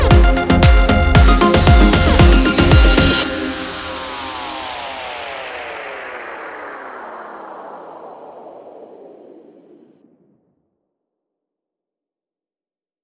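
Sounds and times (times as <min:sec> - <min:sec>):
electronic house techno music: 0:00.0 - 0:06.4.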